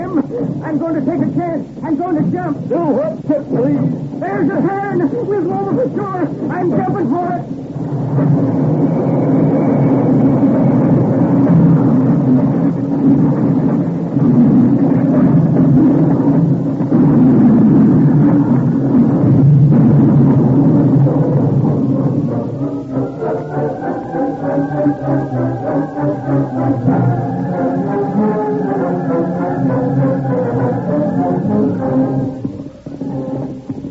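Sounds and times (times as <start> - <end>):
train chugging: 0.0 - 33.8
speech: 0.1 - 10.2
runaway train wreck heavy roaring rumble: 3.6 - 33.8
high whistle-like tone: 8.3 - 12.4, 21.6 - 33.8.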